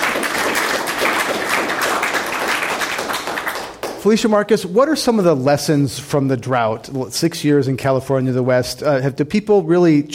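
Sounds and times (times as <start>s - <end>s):
audience applause: 0.0s - 4.0s
speech: 4.0s - 10.1s.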